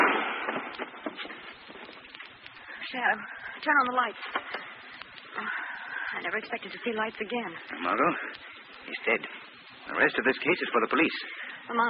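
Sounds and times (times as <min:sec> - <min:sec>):
gunshot in a radio drama: 0:00.0 - 0:01.4
speech: 0:02.9 - 0:04.6, 0:05.4 - 0:11.8.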